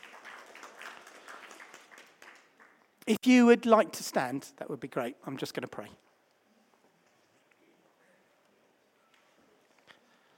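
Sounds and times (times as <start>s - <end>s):
audience applause: 0.0s - 2.8s
speech: 3.1s - 6.0s.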